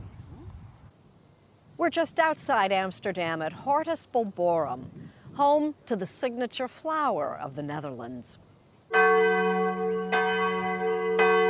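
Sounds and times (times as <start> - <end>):
speech: 1.8 - 9.4
church bells ringing in the village of Limmen: 8.9 - 11.4.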